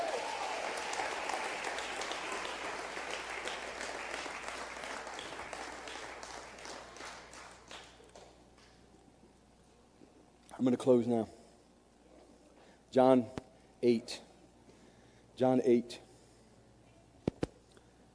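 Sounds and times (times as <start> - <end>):
audience hand clapping: 0.0 - 8.7
speech: 10.6 - 11.4, 12.9 - 14.3, 15.4 - 16.0.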